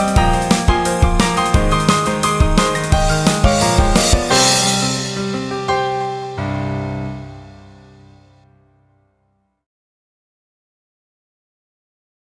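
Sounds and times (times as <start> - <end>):
piano and rhythm music: 0.0 - 8.7.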